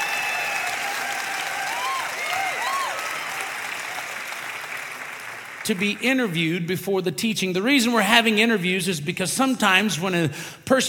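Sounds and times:
audience hand clapping: 0.0s - 6.4s
speech: 5.6s - 10.8s.

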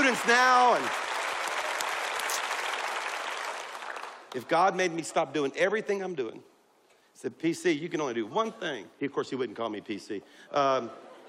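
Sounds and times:
audience applause at a gathering celebrating a school: 0.0s - 4.6s
speech: 0.1s - 1.1s, 4.3s - 6.5s, 7.2s - 11.2s.

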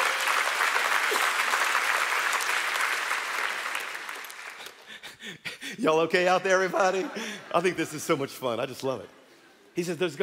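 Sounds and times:
audience applause: 0.0s - 4.9s
speech: 5.3s - 9.2s, 9.8s - 10.2s.

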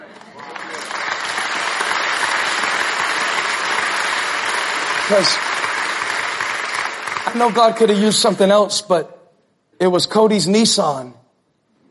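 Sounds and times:
church crowd applause: 0.0s - 8.3s
speech: 5.1s - 5.5s, 7.3s - 9.2s, 9.8s - 11.2s.

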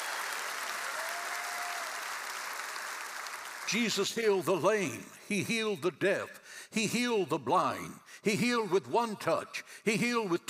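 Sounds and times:
church audience applauding at Cornerstone Church in San Antonio: 0.0s - 4.0s
speech: 3.7s - 10.4s.

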